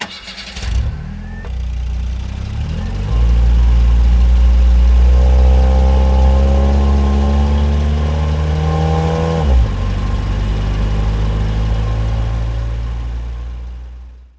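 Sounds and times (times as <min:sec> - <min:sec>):
car pulling away: 0:00.0 - 0:14.1.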